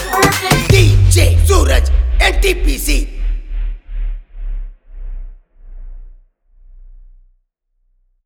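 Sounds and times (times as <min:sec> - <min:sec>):
EDM extended bass mix: 0:00.0 - 0:03.4.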